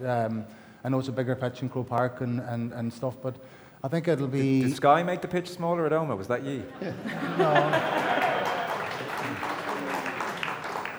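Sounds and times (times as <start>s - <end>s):
speech: 0.0s - 8.3s
laughter: 6.4s - 10.9s
person clapping hands: 7.5s - 10.9s.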